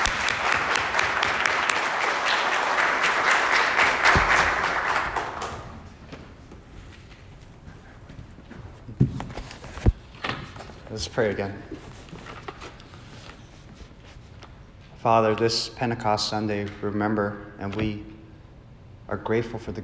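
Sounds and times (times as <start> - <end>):
church congregation clapping to welcome a guest speaker: 0.0 - 6.2
speech: 11.1 - 11.9, 15.0 - 18.1, 19.1 - 19.8.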